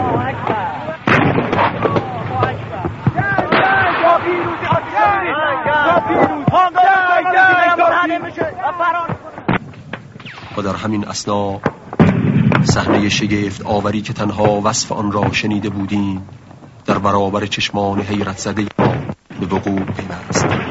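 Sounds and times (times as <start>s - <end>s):
crowd shouting takbir in victory: 0.0s - 9.6s
speech: 10.8s - 11.8s, 12.6s - 18.7s, 19.5s - 20.6s.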